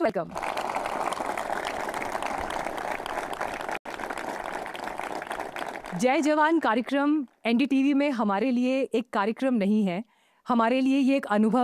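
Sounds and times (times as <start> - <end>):
speech: 0.0 - 0.6, 6.0 - 11.6
audience clapping: 0.0 - 6.6.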